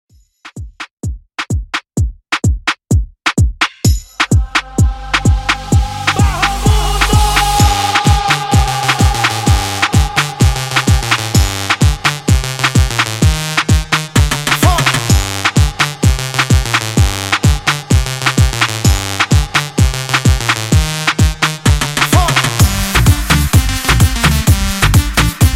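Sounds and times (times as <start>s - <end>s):
128 BPM dancehall mixshow: 0.5s - 25.5s.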